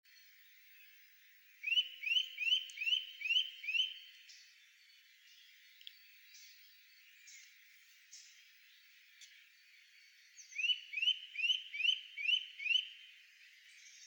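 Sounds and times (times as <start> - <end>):
Eurasian nuthatch whistling: 1.6 - 4.0, 10.6 - 12.9.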